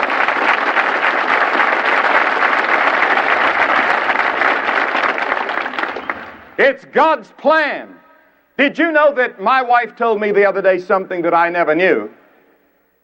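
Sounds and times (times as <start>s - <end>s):
audience applause: 0.0s - 6.6s
speech: 6.6s - 8.0s, 8.6s - 12.2s.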